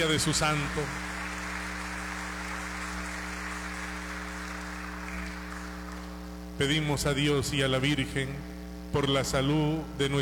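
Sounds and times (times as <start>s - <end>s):
speech: 0.0s - 1.2s, 6.6s - 10.1s
audience applauding: 0.0s - 6.2s.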